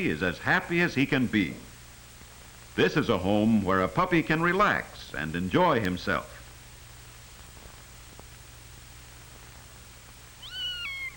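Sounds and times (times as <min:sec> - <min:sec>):
speech: 0:00.0 - 0:01.7, 0:02.8 - 0:06.4
faint low hum: 0:00.0 - 0:11.1
cat meowing: 0:10.4 - 0:11.1.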